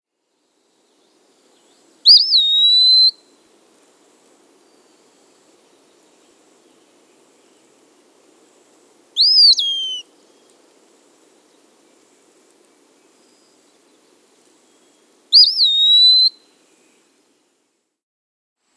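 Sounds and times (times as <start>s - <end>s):
Eastern wood-pewee song: 1.0s - 3.4s, 9.2s - 10.5s, 13.0s - 17.0s.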